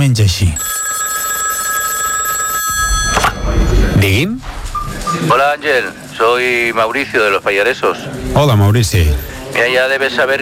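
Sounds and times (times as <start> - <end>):
speech: 0.0 - 0.8, 4.0 - 10.4
telephone ringing with electronic bell tone: 0.6 - 4.3.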